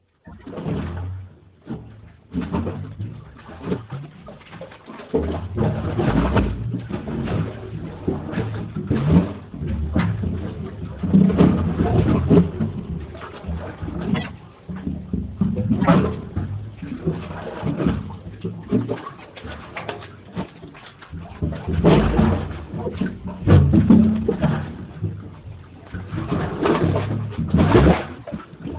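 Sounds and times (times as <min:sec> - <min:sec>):
waves in the storm water drain: 0:00.0 - 0:28.7.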